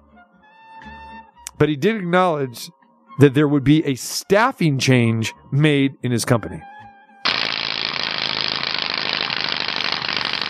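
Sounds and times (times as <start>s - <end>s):
speech: 1.6s - 6.7s
fast-spinning wheel clicking: 7.3s - 10.4s.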